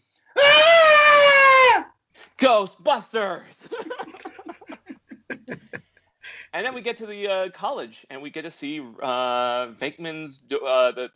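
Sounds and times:
theatrical high-pitched scream: 0.4s - 1.9s
speech: 2.5s - 4.0s, 6.6s - 11.1s
laughter: 3.6s - 6.0s.

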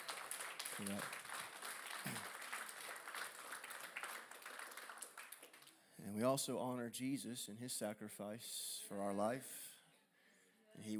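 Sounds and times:
audience clapping: 0.0s - 5.9s
speech: 0.8s - 1.2s, 6.0s - 9.6s, 10.8s - 10.9s.

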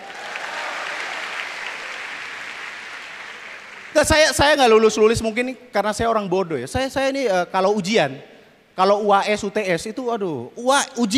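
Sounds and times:
audience applause: 0.0s - 4.4s
speech: 4.0s - 11.1s.

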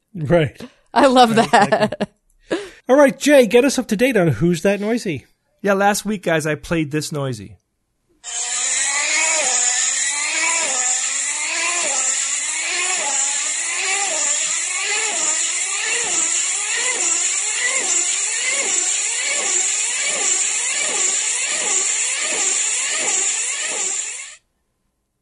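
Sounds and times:
speech: 0.2s - 2.1s, 2.9s - 7.6s, 8.2s - 8.5s
laughter: 1.0s - 2.1s
remote control car electric motor: 8.2s - 24.4s.

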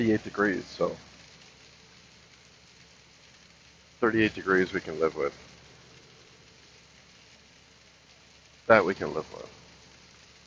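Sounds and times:
speech: 0.0s - 1.1s, 4.0s - 5.5s, 8.7s - 9.6s
heavy rain on a cold 38-degree night: 0.0s - 10.4s.

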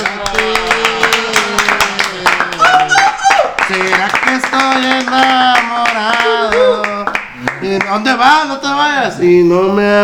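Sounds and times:
applause: 0.0s - 8.0s
speech: 7.9s - 10.0s.

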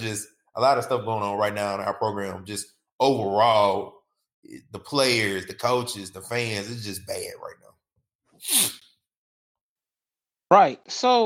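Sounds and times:
speech: 0.0s - 7.7s, 8.4s - 8.8s, 10.5s - 11.2s
sniffling: 8.4s - 8.8s.

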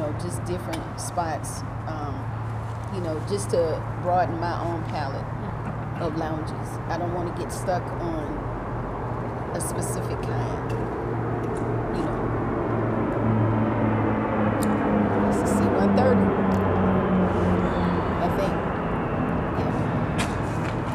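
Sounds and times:
small propeller airplane flying overhead: 0.0s - 20.9s
speech: 0.2s - 5.4s, 6.0s - 8.4s, 9.5s - 12.4s.

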